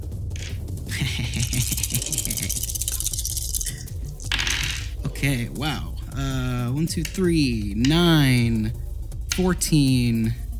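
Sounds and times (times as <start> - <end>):
laughter: 0.8 - 2.7
dice being rolled: 1.4 - 5.0
speech: 5.2 - 8.8, 9.4 - 10.4.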